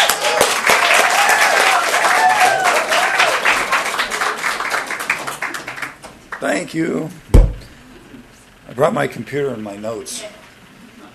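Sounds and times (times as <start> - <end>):
audience clapping to welcome a speaker: 0.0 - 6.7
speech: 6.5 - 7.4, 8.8 - 10.4.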